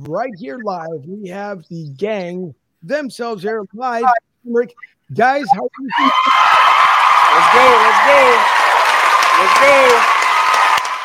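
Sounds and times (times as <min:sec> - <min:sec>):
speech: 0:00.0 - 0:06.6, 0:07.4 - 0:08.6, 0:09.4 - 0:10.2
live audience applause: 0:05.9 - 0:11.0.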